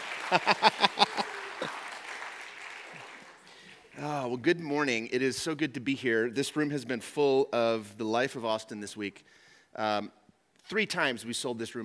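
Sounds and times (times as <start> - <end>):
laughter: 0.0 - 2.2
audience clapping: 0.0 - 4.3
speech: 0.3 - 0.7, 4.4 - 11.8.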